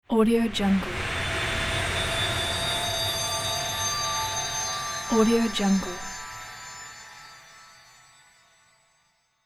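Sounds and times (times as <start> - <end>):
magic spell transition effect: 0.4 - 7.8.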